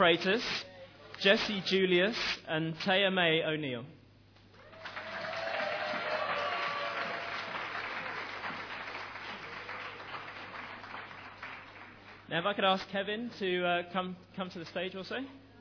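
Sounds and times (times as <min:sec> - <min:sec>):
speech: 0:00.0 - 0:04.0, 0:12.3 - 0:15.4
audience applause: 0:04.6 - 0:12.3.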